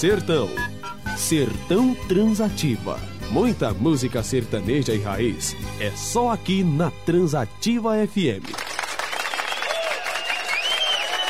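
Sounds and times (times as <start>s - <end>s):
speech: 0.0s - 8.6s
applause during a Brazilian radio comedy segment: 8.4s - 11.2s.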